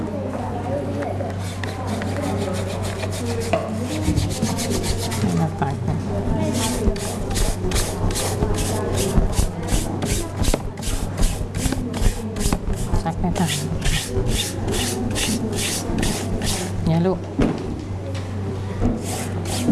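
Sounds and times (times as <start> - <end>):
woman talking: 0.0 - 10.4, 11.4 - 14.0, 14.9 - 17.4
low constant hum: 0.0 - 19.6
scrubbing with sprinkled detergent powder: 1.4 - 5.5, 6.2 - 16.9.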